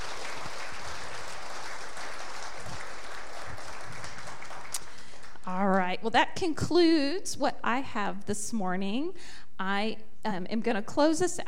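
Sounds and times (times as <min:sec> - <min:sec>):
audience clapping: 0:00.0 - 0:05.9
speech: 0:06.0 - 0:11.4.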